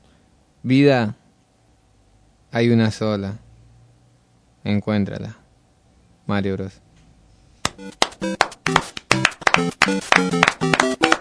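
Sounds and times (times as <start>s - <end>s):
speech: 0.6s - 1.2s, 2.5s - 3.4s, 4.6s - 5.4s, 6.3s - 6.8s, 7.8s - 8.9s, 9.6s - 10.9s
rhythmic audience clapping: 7.6s - 11.1s.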